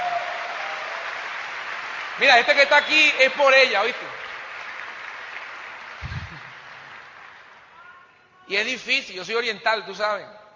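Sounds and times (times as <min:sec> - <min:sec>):
applause: 0:00.0 - 0:08.1
speech: 0:02.2 - 0:04.2, 0:08.5 - 0:10.4.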